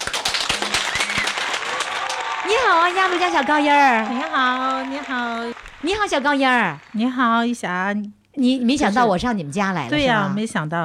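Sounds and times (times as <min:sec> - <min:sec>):
applause: 0:00.0 - 0:07.6
speech: 0:02.5 - 0:10.8.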